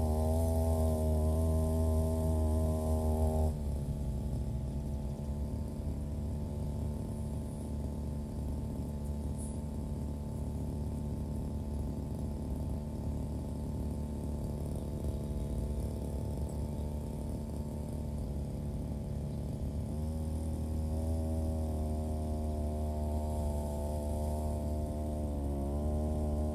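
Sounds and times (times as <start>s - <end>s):
brush cutter engine running while cutting grass: 0.0s - 26.5s.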